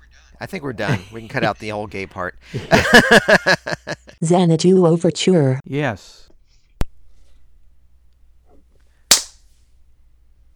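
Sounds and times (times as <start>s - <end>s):
laughter: 0.0s - 4.2s
speech: 0.4s - 6.3s
sharp hand claps: 9.1s - 9.4s.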